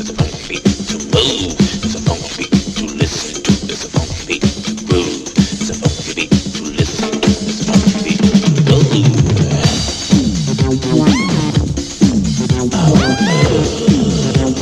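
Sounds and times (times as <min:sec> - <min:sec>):
crunch funky beat: 0:00.0 - 0:14.6.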